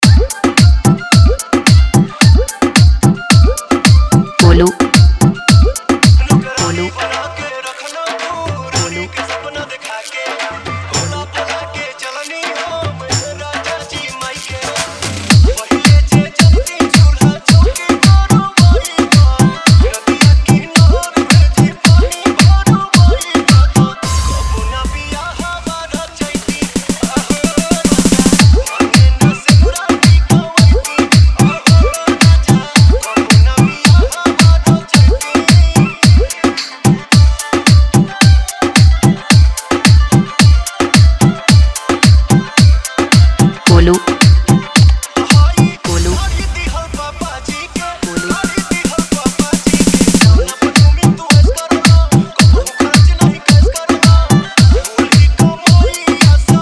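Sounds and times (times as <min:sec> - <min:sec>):
remix music: 0:00.0 - 0:12.8, 0:13.5 - 0:56.6.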